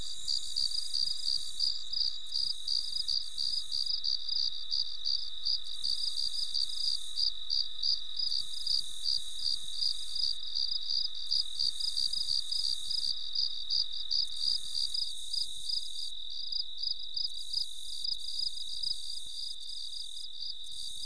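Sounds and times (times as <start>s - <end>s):
melodic crickets chirping at night: 0.0s - 21.0s.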